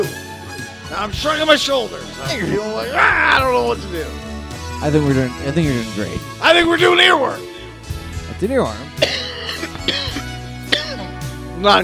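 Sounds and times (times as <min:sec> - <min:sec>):
speech: 0:00.0 - 0:00.2, 0:00.9 - 0:07.5, 0:08.4 - 0:09.2, 0:11.6 - 0:11.8
smoker's cough: 0:09.0 - 0:11.2.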